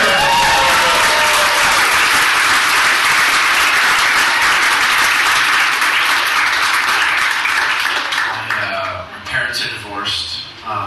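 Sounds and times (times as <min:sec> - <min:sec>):
audience whistles and cheers: 0:00.0 - 0:02.0
audience applause for comedian: 0:00.0 - 0:09.0.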